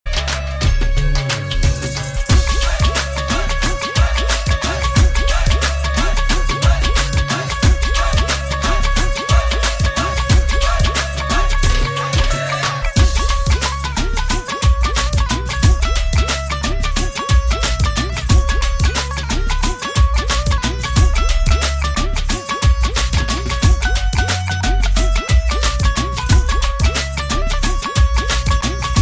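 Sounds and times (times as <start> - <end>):
tumbi playing: 0.1 - 29.0.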